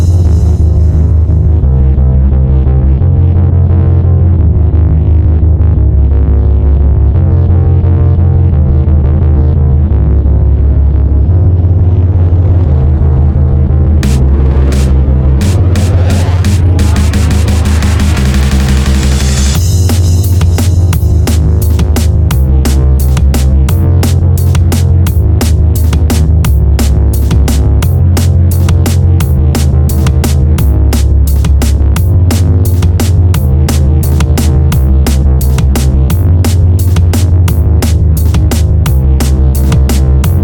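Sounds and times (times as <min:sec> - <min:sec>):
drum and bass music: 0:00.0 - 0:40.4.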